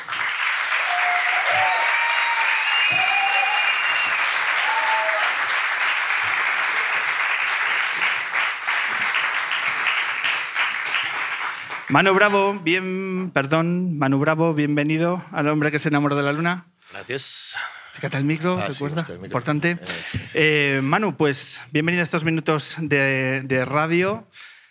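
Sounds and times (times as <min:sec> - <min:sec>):
audience applause: 0:00.0 - 0:12.0
faint cheers and whistles: 0:00.7 - 0:05.5
speech: 0:11.9 - 0:24.5.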